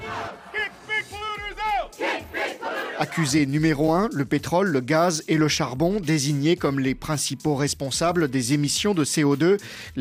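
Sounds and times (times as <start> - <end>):
environmental activists shouting protest slogans: 0.0 - 3.3
speech: 3.0 - 9.9.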